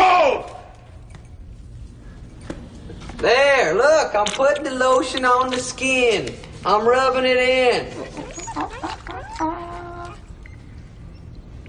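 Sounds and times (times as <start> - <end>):
low rumble: 0.0 - 11.6
speech: 3.2 - 8.7
dog whimpering: 7.8 - 10.6.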